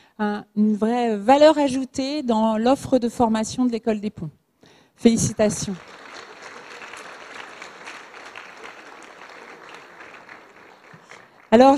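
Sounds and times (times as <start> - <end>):
speech: 0.2 - 4.4, 5.0 - 6.0, 11.5 - 11.7
audience applause for administrative and teaching teams at the École des Ponts: 5.6 - 11.7.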